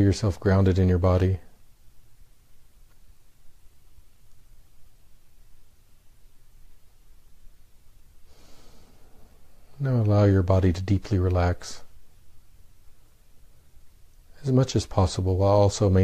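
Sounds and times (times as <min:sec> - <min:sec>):
speech: 0:00.0 - 0:01.5, 0:09.8 - 0:11.8, 0:14.4 - 0:16.0
slow breathing during guided breathing meditation: 0:08.2 - 0:09.7.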